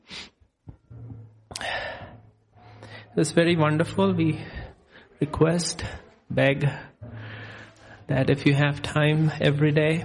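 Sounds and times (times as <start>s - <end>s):
low tone: 0.7s - 4.5s
deep breath during a guided chanting meditation: 1.5s - 3.2s, 4.3s - 5.2s, 5.8s - 8.1s
speech: 3.2s - 4.6s, 5.2s - 6.9s, 8.1s - 10.0s.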